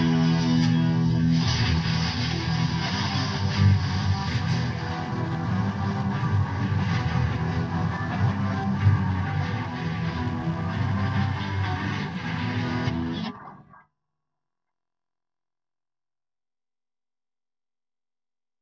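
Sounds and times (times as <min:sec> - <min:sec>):
guitar: 0:00.0 - 0:13.8.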